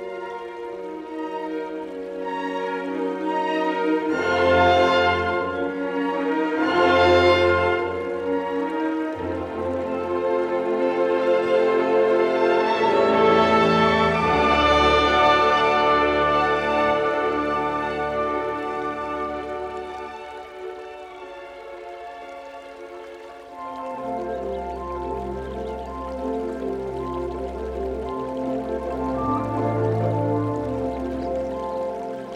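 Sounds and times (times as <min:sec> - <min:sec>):
nature music: 0:00.0 - 0:32.3
birds: 0:18.7 - 0:32.3.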